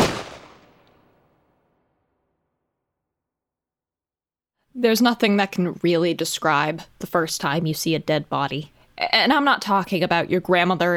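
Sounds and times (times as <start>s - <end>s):
gunshot: 0.0s - 1.7s
speech: 4.8s - 10.9s.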